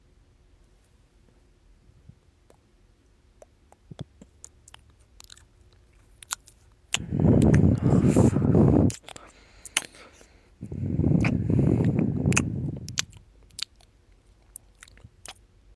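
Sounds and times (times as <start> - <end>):
mouth noises: 3.3 - 5.5, 6.1 - 15.4.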